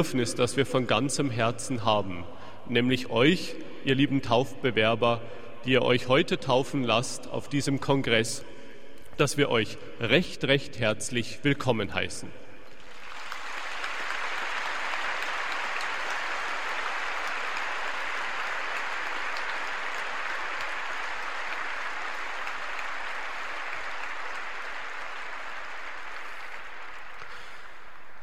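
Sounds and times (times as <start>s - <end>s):
speech: 0.0s - 8.6s, 9.2s - 12.4s
audience applause: 12.8s - 28.2s.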